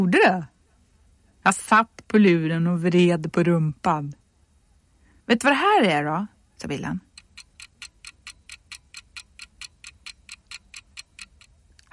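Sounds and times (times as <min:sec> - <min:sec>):
speech: 0:00.0 - 0:00.5, 0:01.4 - 0:04.2, 0:05.3 - 0:07.1
kitchen egg timer ticking: 0:07.0 - 0:11.6.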